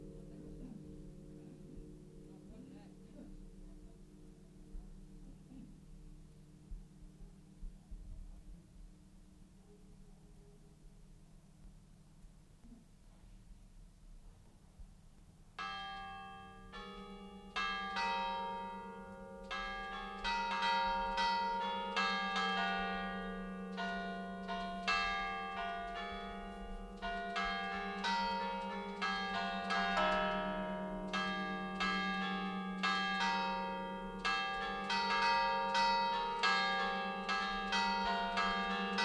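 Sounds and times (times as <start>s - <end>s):
church bells ringing in Molassana alta, Genova, Liguria: 15.6s - 39.0s.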